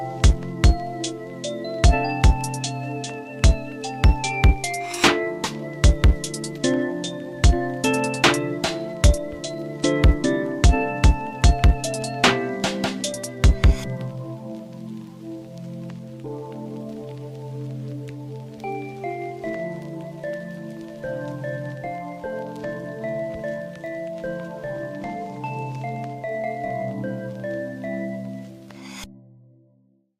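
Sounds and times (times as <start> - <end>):
trap hip hop music: 0.0 - 14.5.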